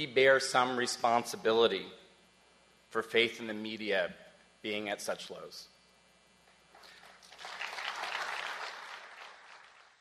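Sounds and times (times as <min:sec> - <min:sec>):
speech: 0:00.0 - 0:02.0, 0:02.9 - 0:05.7
faint scattered audience clapping: 0:06.7 - 0:09.9.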